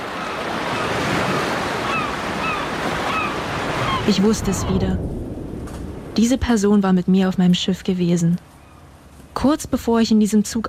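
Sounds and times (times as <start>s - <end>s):
seagulls: 0.0s - 4.8s
distant ocean waves: 0.0s - 10.6s
speech: 4.0s - 5.2s, 6.2s - 8.4s, 9.4s - 10.6s.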